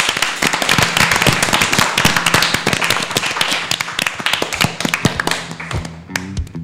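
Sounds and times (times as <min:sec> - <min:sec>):
applause: 0:00.0 - 0:06.4.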